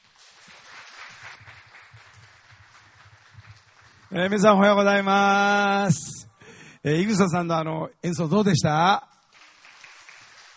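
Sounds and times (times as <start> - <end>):
audience applause: 0.0 - 5.1, 9.3 - 10.5
speech: 4.1 - 6.1, 6.8 - 9.1.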